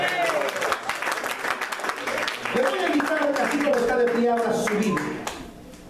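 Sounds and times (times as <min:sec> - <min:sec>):
audience applauding: 0:00.0 - 0:05.4
speech: 0:03.7 - 0:05.3.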